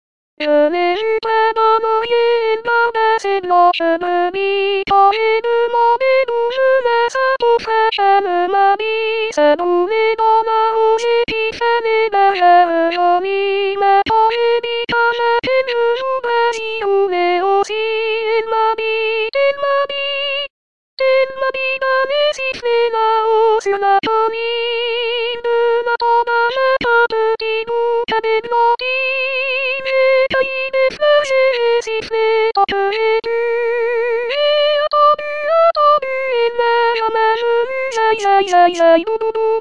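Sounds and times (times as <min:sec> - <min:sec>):
soprano singing: 0:00.4 - 0:39.4.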